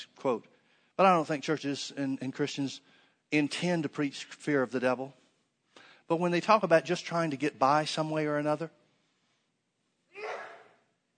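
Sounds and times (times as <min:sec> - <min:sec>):
speech: 0:00.0 - 0:05.2, 0:06.1 - 0:08.8
person sneezing: 0:10.1 - 0:10.9.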